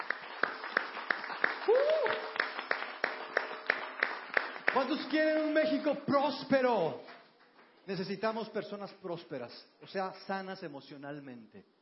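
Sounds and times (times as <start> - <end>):
audience applause: 0.0 - 5.8
speech: 4.8 - 7.1, 7.9 - 11.8.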